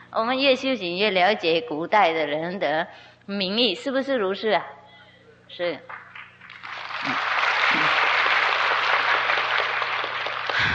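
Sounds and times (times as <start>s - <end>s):
speech: 0.1s - 4.8s, 5.5s - 6.0s
audience applause: 5.9s - 10.7s.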